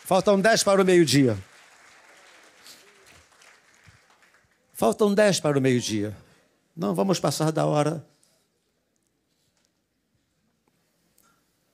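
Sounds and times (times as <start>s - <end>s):
audience applause: 0.0s - 4.7s
speech: 0.1s - 1.5s, 4.8s - 6.2s, 6.8s - 8.1s.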